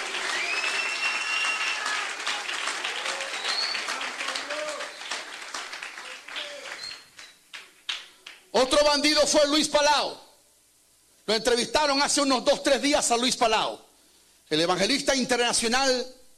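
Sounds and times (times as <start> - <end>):
audience applause: 0.0 - 8.5
speech: 8.6 - 10.2, 11.3 - 13.9, 14.5 - 16.2.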